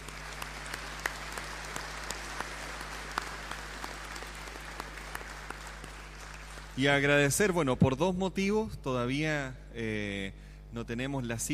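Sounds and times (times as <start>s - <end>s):
audience applause: 0.0s - 7.0s
speech: 6.8s - 11.5s.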